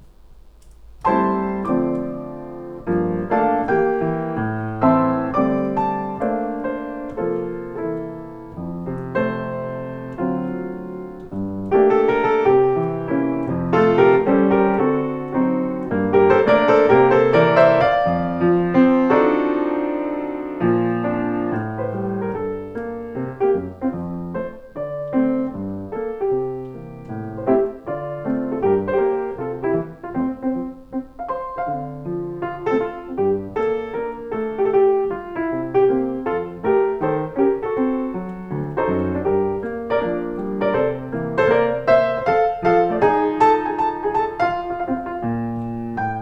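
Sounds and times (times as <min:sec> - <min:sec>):
Essex grand piano: 0:00.0 - 0:46.1.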